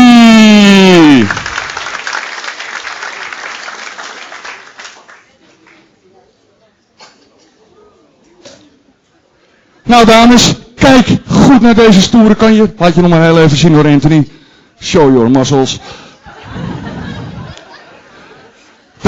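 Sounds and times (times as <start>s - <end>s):
audience applause: 0.6s - 5.4s
speech: 9.9s - 16.0s
laughter: 15.8s - 19.0s.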